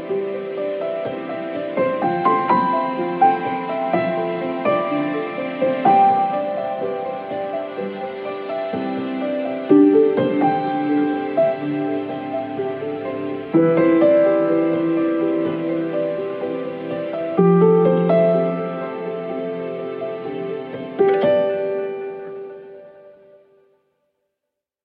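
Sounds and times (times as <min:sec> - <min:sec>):
piano ringtone: 0:00.0 - 0:23.3.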